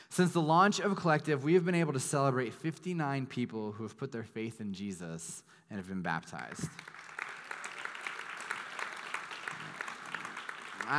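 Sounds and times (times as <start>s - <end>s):
speech: 0.2s - 7.0s
audience clapping: 6.3s - 10.9s.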